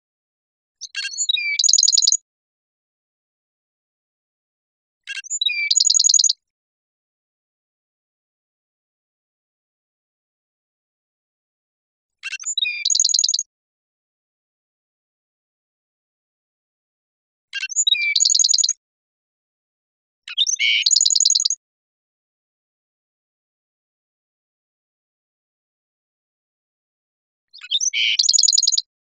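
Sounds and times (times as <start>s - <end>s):
black-throated sparrow song with chips and ringing trill: 0.8s - 2.2s, 5.1s - 6.4s, 12.2s - 13.5s, 17.6s - 18.8s, 20.3s - 21.6s, 27.6s - 28.9s.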